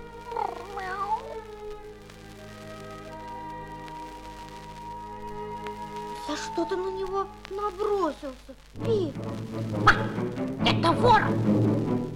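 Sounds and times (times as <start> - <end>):
sustained tones: 0.0 - 12.1
cat meowing and caterwauling: 0.2 - 1.4
speech: 6.4 - 12.1.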